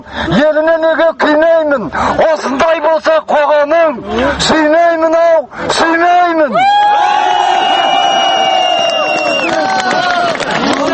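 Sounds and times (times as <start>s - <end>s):
speech: 0.1s - 6.1s
rally crowd shouting and chanting in Almaty: 5.8s - 10.9s
whoops: 6.6s - 10.4s.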